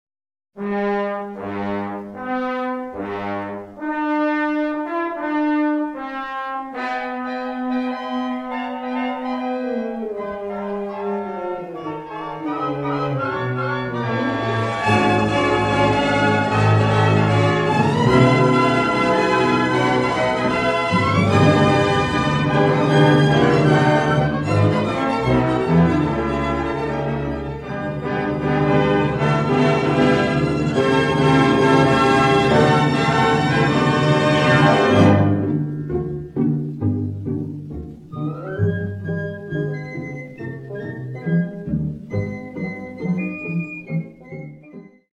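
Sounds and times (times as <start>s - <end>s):
orchestra: 0.6s - 45.1s.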